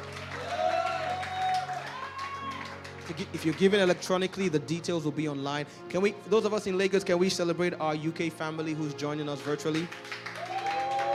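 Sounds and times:
audience clapping: 0:00.0 - 0:04.3, 0:09.2 - 0:11.1
audience shouting: 0:00.4 - 0:02.7
speech: 0:03.1 - 0:10.4.

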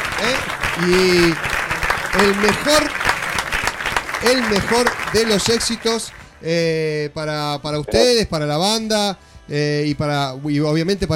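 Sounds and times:
crowd voices and cheers: 0:00.0 - 0:06.2
audience applause: 0:00.0 - 0:06.4
speech: 0:00.3 - 0:01.5, 0:02.1 - 0:03.0, 0:04.2 - 0:11.1.

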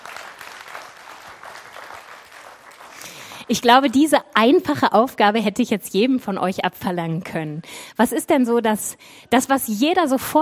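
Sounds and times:
audience applause: 0:00.0 - 0:03.5
speech: 0:03.5 - 0:10.4.

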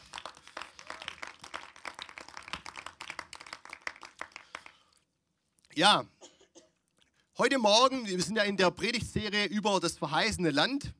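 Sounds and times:
audience applause: 0:00.0 - 0:04.8
speech: 0:05.8 - 0:06.1, 0:07.4 - 0:10.9.

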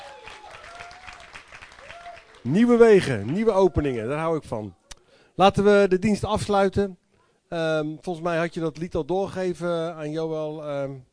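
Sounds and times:
audience applause: 0:00.0 - 0:03.6
speech: 0:02.4 - 0:04.8, 0:05.4 - 0:11.1.

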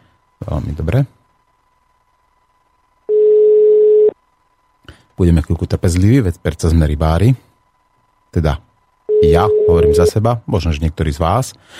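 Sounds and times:
speech: 0:00.5 - 0:01.2, 0:05.2 - 0:07.5, 0:08.3 - 0:11.7
telephone line ringing: 0:03.1 - 0:04.1, 0:09.1 - 0:10.1.

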